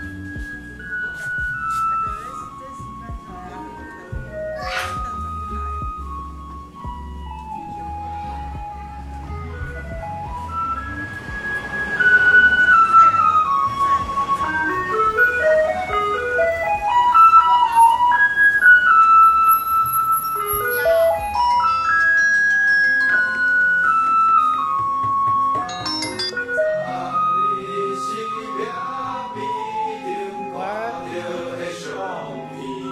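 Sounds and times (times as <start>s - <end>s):
garbage truck low engine rumble: 0.0s - 17.0s
garbage truck playing its tinkling electronic tune: 0.0s - 32.8s.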